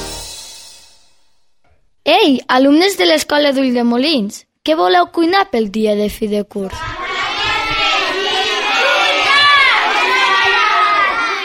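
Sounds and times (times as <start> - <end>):
speech: 2.1 - 7.0
crowd of children shouting all at once: 6.8 - 11.4.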